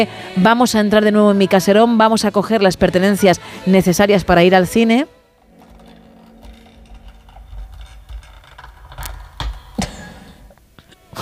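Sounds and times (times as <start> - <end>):
speech: 0.0 - 5.2
heavy door being opened: 5.4 - 10.6.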